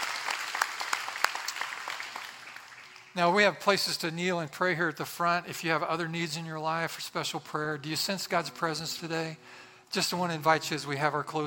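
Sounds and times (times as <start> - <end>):
audience clapping hands: 0.0 - 3.4
speech: 3.2 - 11.4.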